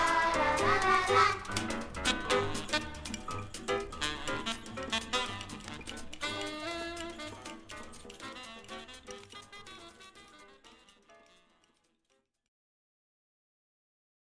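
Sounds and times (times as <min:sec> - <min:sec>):
twelve-bar blues music: 0:00.0 - 0:11.2.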